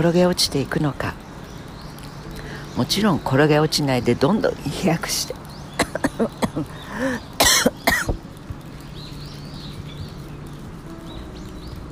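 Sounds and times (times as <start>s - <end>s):
speech: 0.0s - 1.2s, 2.8s - 7.3s
coughing and throat clearing from a propolis candy stuck in the throat: 5.8s - 6.8s, 7.4s - 8.2s.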